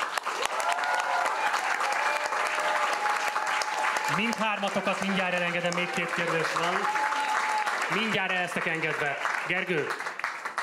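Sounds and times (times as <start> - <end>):
audience applause: 0.0 - 10.6
speech: 4.1 - 7.0, 7.9 - 10.1.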